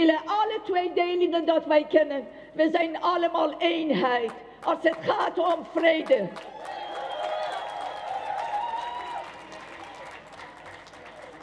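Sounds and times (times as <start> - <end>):
speech: 0.0 - 6.8
applause at a demonstration against racism and fascism: 5.6 - 11.4.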